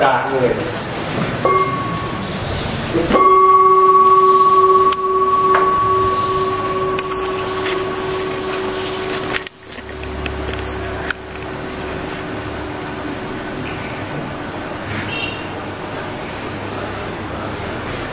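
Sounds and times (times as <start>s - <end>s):
meditation bell being struck: 1.4s - 12.4s.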